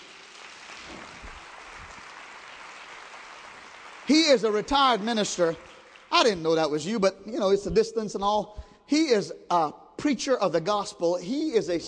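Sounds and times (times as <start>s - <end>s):
audience clapping hands: 0.0s - 7.0s
speech: 4.1s - 11.8s.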